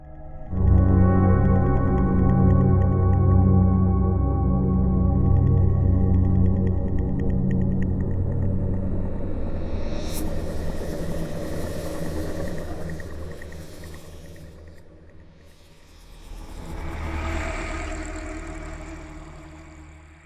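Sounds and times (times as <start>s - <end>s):
atmosphere: 0.0s - 20.2s.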